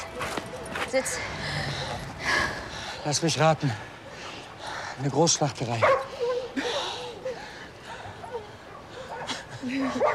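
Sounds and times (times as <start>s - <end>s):
dogs barking and whimpering: 0.0s - 2.2s, 5.8s - 10.1s
speech: 0.9s - 1.5s, 2.3s - 3.9s, 5.0s - 6.1s, 9.7s - 10.1s.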